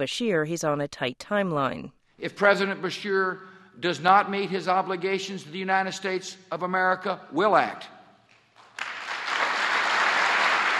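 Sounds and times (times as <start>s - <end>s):
speech: 0.0s - 8.0s
audience applause after a speech: 8.6s - 10.7s.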